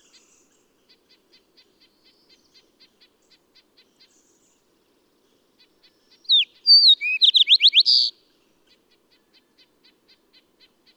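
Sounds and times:
bird singing: 6.2 - 8.1.

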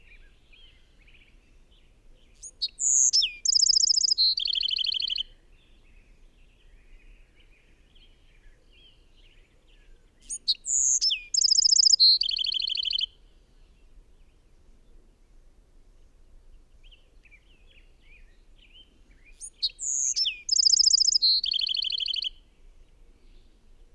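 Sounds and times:
bird song with trills: 0.0 - 14.4, 16.8 - 22.4.

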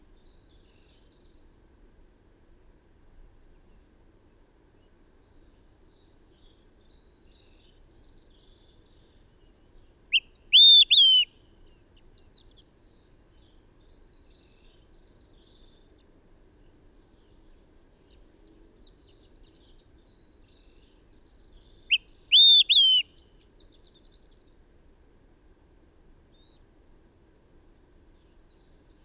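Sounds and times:
bird singing: 5.3 - 16.1, 16.7 - 24.6.

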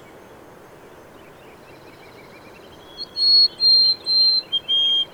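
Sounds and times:
bird whistling: 2.9 - 5.1.

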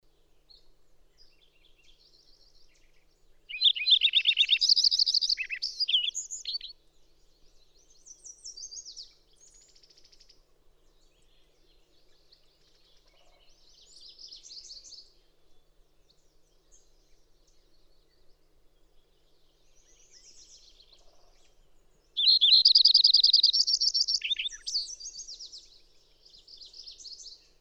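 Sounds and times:
bird song: 0.0 - 27.6.

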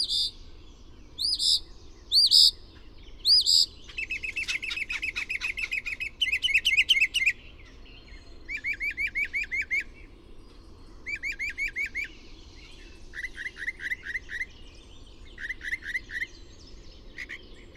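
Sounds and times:
bird singing: 0.0 - 17.7.

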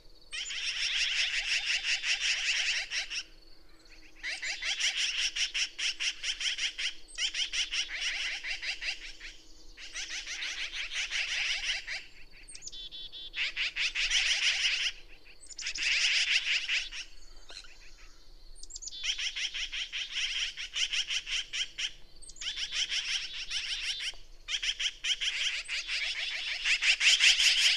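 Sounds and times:
bird song: 0.0 - 27.7.

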